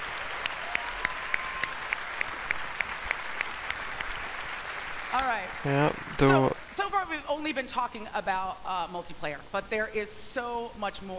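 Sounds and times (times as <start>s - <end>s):
audience applause for Angela Bassett on stage at a live event: 0.0s - 6.7s
speech: 5.2s - 11.1s.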